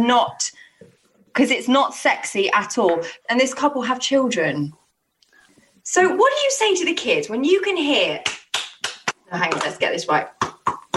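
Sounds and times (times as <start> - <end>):
speech: 0.0 - 0.6, 1.4 - 4.8, 5.8 - 8.4, 9.3 - 10.8
rhythmic hand clapping: 8.2 - 9.8, 10.4 - 10.9.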